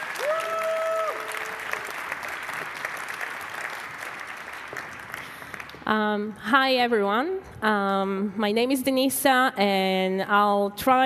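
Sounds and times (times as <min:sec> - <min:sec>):
audience applause: 0:00.0 - 0:05.8
speech: 0:05.9 - 0:11.0.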